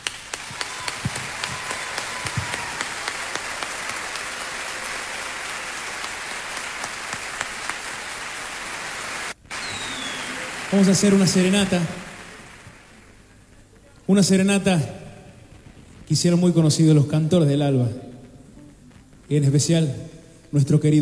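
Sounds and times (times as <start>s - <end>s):
audience applause: 0.0s - 13.8s
speech: 10.7s - 12.1s, 14.1s - 15.0s, 16.1s - 18.0s, 19.3s - 21.0s.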